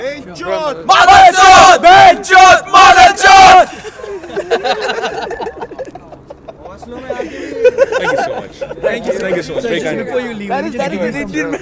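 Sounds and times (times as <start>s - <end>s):
crowd metal cheer: 0.0s - 11.6s
laughter: 0.0s - 11.6s
speech: 0.2s - 3.8s, 9.2s - 11.6s.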